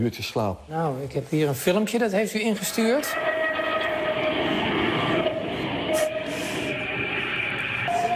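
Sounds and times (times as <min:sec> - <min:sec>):
speech: 0:00.0 - 0:03.4
tram passing by: 0:02.6 - 0:08.1.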